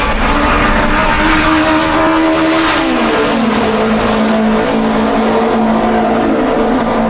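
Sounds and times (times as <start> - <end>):
Novi race car engine lapping a track: 0.0 - 7.0.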